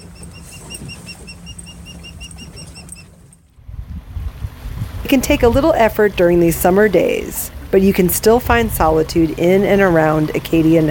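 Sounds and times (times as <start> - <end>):
osprey fledglings calling from nest: 0.0 - 3.2
speech: 5.1 - 10.8.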